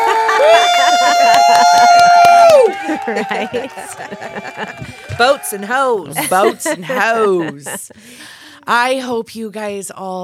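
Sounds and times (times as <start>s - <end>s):
clapping and cheering sound effect: 0.0s - 6.5s
laughter: 0.0s - 8.6s
speech: 0.4s - 10.2s.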